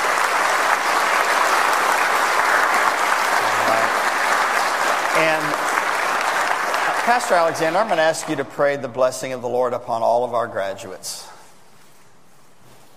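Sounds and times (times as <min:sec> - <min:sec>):
audience applause: 0:00.0 - 0:08.5
speech: 0:07.1 - 0:11.3.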